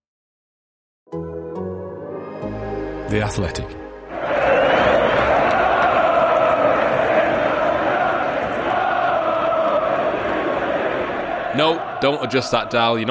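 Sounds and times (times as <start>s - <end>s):
speech: 3.1s - 3.8s, 11.6s - 13.0s
Manchester United away fans singing a chant in Madrid: 4.1s - 13.0s.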